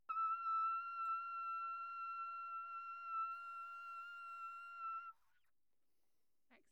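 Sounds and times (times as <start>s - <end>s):
high trumpet in an anechoic room: 0.1s - 5.2s.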